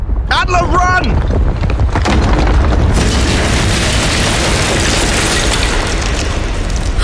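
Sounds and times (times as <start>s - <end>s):
loud continuous roar of collapsing debris: 0.0s - 7.0s
speech: 0.5s - 1.6s
massive palace door caving in with a booming crash: 1.2s - 7.0s.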